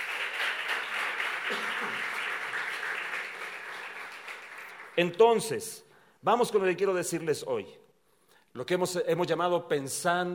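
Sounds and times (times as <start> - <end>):
audience applause: 0.0 - 5.0
speech: 1.5 - 2.1, 5.0 - 7.8, 8.5 - 10.3.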